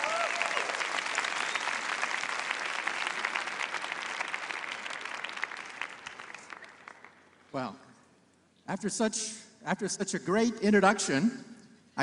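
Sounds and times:
audience applause welcoming Professor Michio Kaku into a debate: 0:00.0 - 0:07.4
speech: 0:07.6 - 0:07.8, 0:08.7 - 0:12.0.

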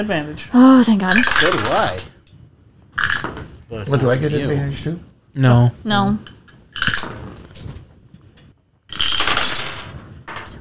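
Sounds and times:
speech: 0:00.0 - 0:02.2, 0:03.7 - 0:06.4
dice rolling on a hard tabletop: 0:01.1 - 0:02.1, 0:03.0 - 0:03.6, 0:06.2 - 0:07.8, 0:08.9 - 0:10.5.

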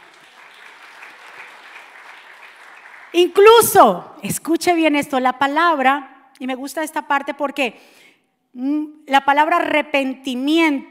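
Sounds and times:
loud audience applause: 0:00.0 - 0:03.3
speech: 0:03.1 - 0:10.8.

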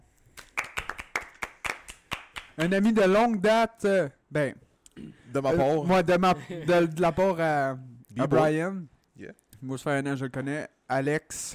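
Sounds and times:
hands clapping: 0:00.3 - 0:03.3
speech: 0:02.6 - 0:11.5.

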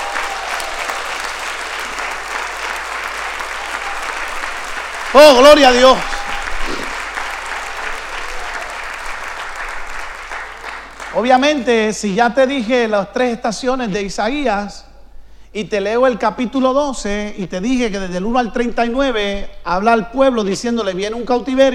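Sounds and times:
audience applause: 0:00.0 - 0:11.2
speech: 0:05.2 - 0:06.2, 0:11.2 - 0:14.9, 0:15.6 - 0:21.7.

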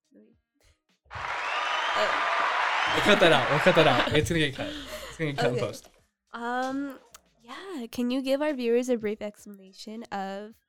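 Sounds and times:
applause sound effect from button: 0:01.1 - 0:04.6
speech: 0:02.0 - 0:02.3, 0:02.9 - 0:10.6
laughter: 0:02.0 - 0:05.8.

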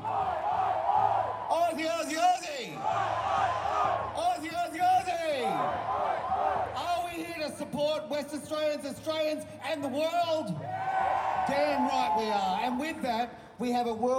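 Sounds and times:
large crowd cheering and chanting: 0:00.0 - 0:07.2, 0:10.5 - 0:13.3
speech: 0:08.0 - 0:10.8, 0:11.5 - 0:14.1.

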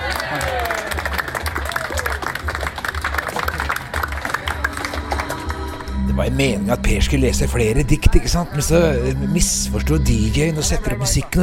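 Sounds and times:
audience applause: 0:00.0 - 0:05.9
speech: 0:06.3 - 0:11.4.

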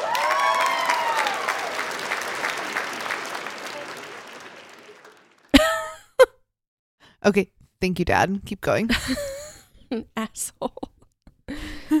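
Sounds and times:
applause: 0:00.0 - 0:06.0
speech: 0:07.2 - 0:10.9.

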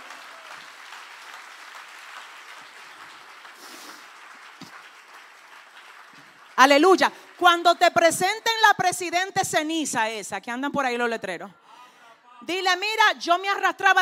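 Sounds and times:
audience applause: 0:00.0 - 0:07.9
speech: 0:06.6 - 0:11.6, 0:12.4 - 0:14.0.

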